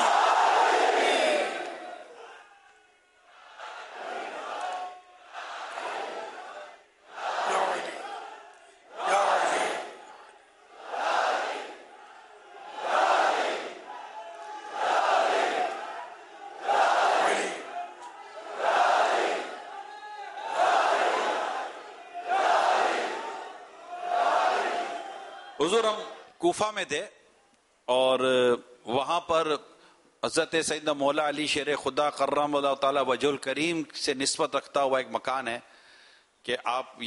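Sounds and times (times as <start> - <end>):
crowd shouting in unison in response to a slogan: 0.0 - 25.5
speech: 25.6 - 27.1, 27.9 - 35.7, 36.4 - 37.0.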